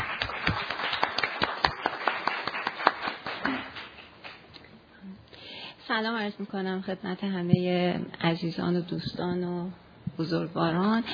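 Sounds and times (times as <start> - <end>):
audience applause: 0.0 - 4.4
speech: 5.9 - 11.1.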